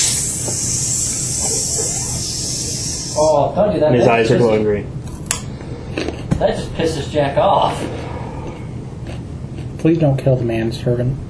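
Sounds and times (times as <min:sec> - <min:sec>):
voice imitating a seltzer bottle spraying: 0:00.0 - 0:03.4
speech: 0:03.2 - 0:05.0, 0:06.4 - 0:08.0, 0:09.8 - 0:11.2.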